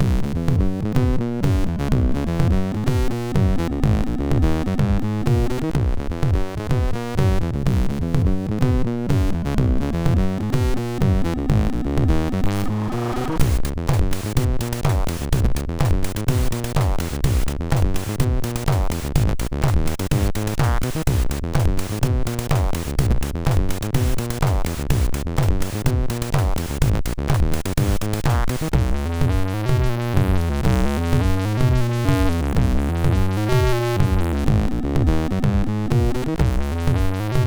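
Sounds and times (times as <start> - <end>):
dirty SID MOS6581 chiptune loop: 0.2 - 37.4.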